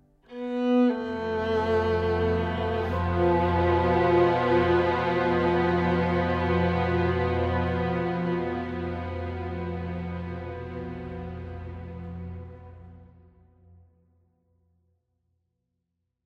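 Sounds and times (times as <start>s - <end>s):
viola: 0.3s - 13.1s.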